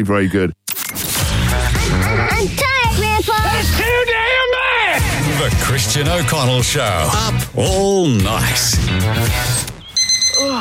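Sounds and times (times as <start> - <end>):
speech: 0.0 - 1.0, 1.9 - 9.6, 10.4 - 10.5
alarm clock ringing: 9.9 - 10.5.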